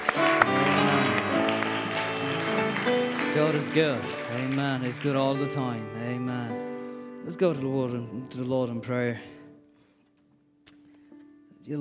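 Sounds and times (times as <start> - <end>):
crowd audience hand clapping: 0.0 - 6.5
speech: 3.4 - 6.6, 7.2 - 9.4.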